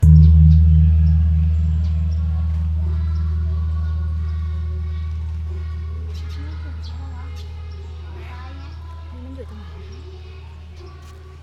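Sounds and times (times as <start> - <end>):
temple bell in Sukhothai: 0.0 - 8.6.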